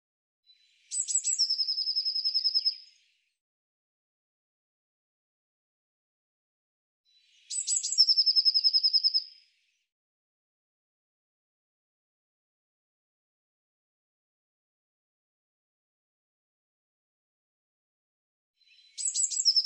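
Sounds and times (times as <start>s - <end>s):
bird song: 0.4s - 3.4s, 7.0s - 10.0s, 18.6s - 19.6s.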